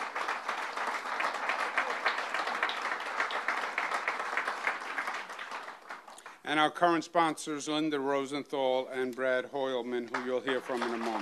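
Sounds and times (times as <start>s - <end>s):
audience applause: 0.0s - 6.4s, 10.1s - 11.2s
speech: 6.5s - 11.2s.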